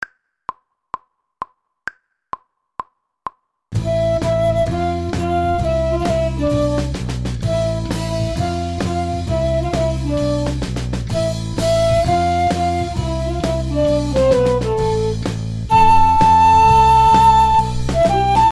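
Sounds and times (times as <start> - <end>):
flute: 3.8 - 18.5.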